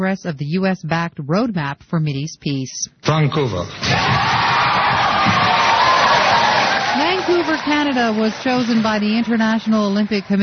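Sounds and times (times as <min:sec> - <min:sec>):
speech: 0:00.0 - 0:04.5, 0:07.3 - 0:10.4
large crowd in Vancouver cheering the 2010 Winter Olympics host announcement: 0:03.8 - 0:10.4.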